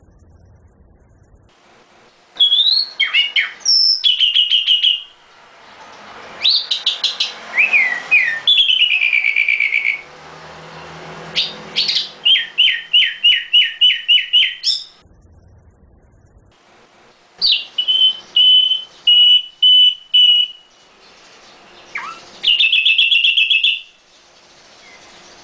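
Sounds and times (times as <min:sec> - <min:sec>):
nightingale chirping in variations: 0:02.4 - 0:05.3, 0:06.4 - 0:10.1, 0:11.4 - 0:15.0, 0:17.4 - 0:25.4.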